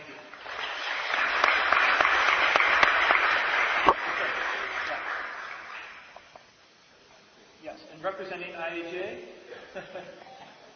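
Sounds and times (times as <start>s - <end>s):
audience applause: 0.0s - 6.2s
speech: 8.2s - 10.3s
laughter: 9.5s - 10.7s.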